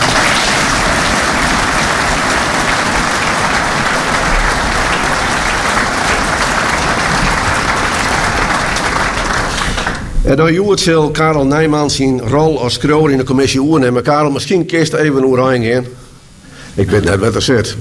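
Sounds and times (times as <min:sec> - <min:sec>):
audience clapping: 0:00.0 - 0:10.2
speech: 0:10.3 - 0:16.0, 0:16.8 - 0:17.7.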